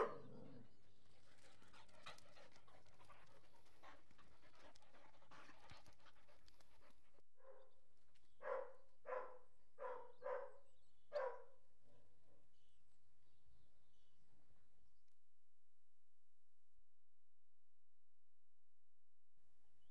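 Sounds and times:
Collie Airedale cross dogs barking: 0:00.0 - 0:00.5, 0:08.4 - 0:11.5.

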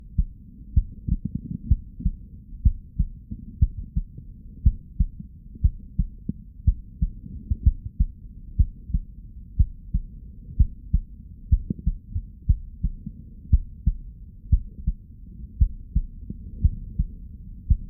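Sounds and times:
heartbeat through stethoscope on chest: 0:00.0 - 0:17.8.

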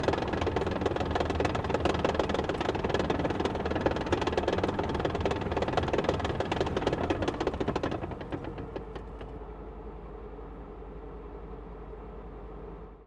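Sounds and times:
M18 Hellcat tank destroyer tracks driving, reversing and stopping, onboard: 0:00.0 - 0:09.5.

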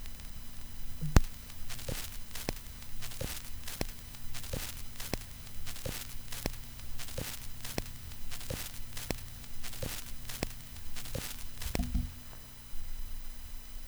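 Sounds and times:
vinyl crackle: 0:00.0 - 0:13.8.

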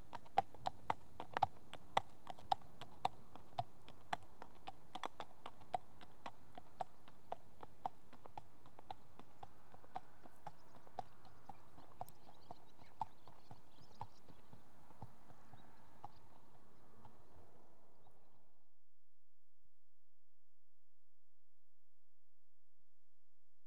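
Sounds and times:
one horse walking on tarmac: 0:00.0 - 0:17.2.

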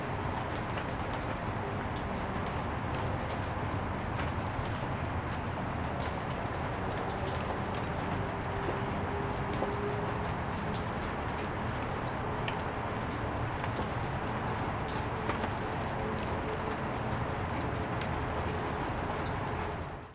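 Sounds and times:
distant traffic: 0:00.0 - 0:20.1
rain on concrete in an alley: 0:00.0 - 0:20.1.

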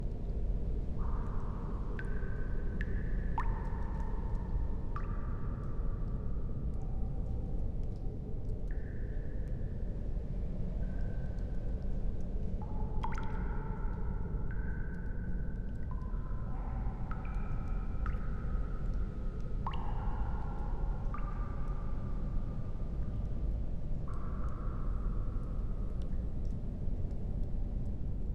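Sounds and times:
water drips in a cave: 0:00.0 - 0:28.3.

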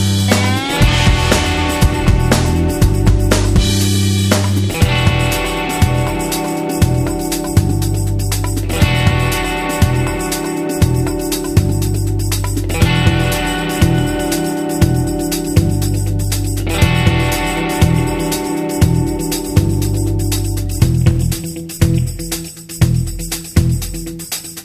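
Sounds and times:
funky music: 0:00.0 - 0:24.6.

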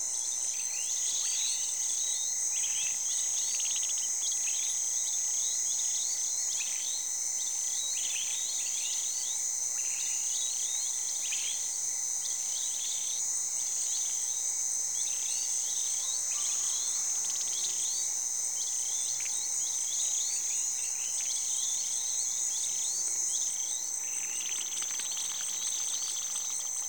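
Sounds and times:
insects in the savanna of Senegal: 0:00.1 - 0:26.8.

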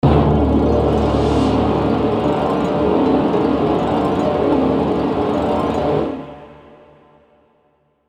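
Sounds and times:
orchestral phrase: 0:00.0 - 0:06.3.

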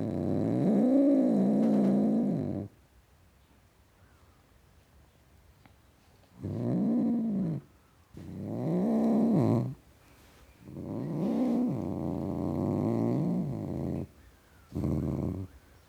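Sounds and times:
male domestic tom cat growling: 0:00.0 - 0:02.7, 0:06.4 - 0:09.8, 0:10.6 - 0:15.6.

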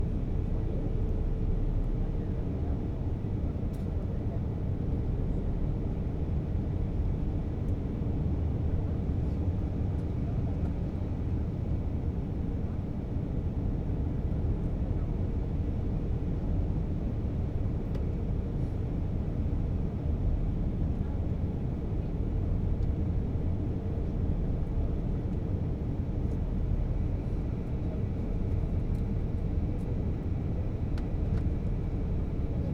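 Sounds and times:
faint airliner in flight noises: 0:00.0 - 0:32.7.

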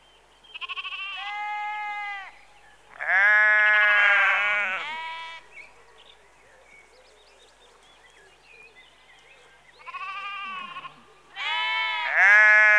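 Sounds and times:
sheep bleating in a rural outdoor setting: 0:00.6 - 0:02.4, 0:03.0 - 0:05.5, 0:09.8 - 0:12.7.

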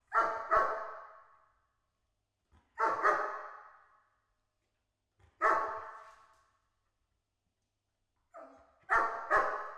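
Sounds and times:
German Shepherd dog barking: 0:00.1 - 0:01.1, 0:02.8 - 0:03.7, 0:05.4 - 0:06.0, 0:08.4 - 0:09.7.

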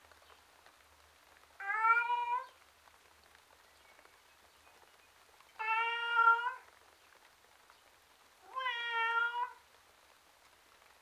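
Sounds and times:
domestic tom cat meowing outside: 0:01.6 - 0:02.5, 0:05.6 - 0:06.6, 0:08.4 - 0:09.6.

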